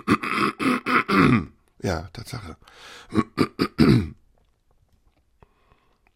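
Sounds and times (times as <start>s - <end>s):
person clearing throat: 0.0s - 1.6s, 3.1s - 4.2s
speech: 1.1s - 4.2s.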